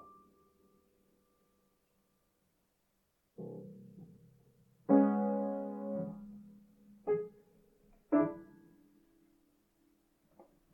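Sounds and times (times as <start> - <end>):
piano improvisation: 4.9 - 7.4.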